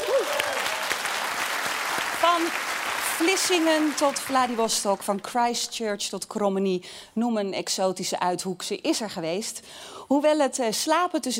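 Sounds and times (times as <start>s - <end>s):
audience applause: 0.0s - 5.1s
speech: 2.4s - 11.3s.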